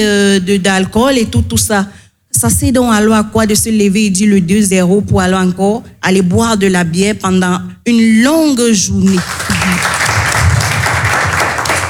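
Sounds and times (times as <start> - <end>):
speech: 0.0 - 10.3
audience applause at a public discussion: 9.1 - 11.8.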